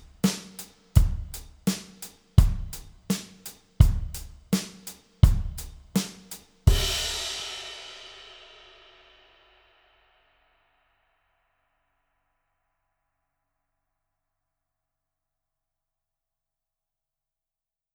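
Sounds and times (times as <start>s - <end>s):
84 bpm pop drum track played on Yamaha FGDP-30: 0.0s - 8.4s.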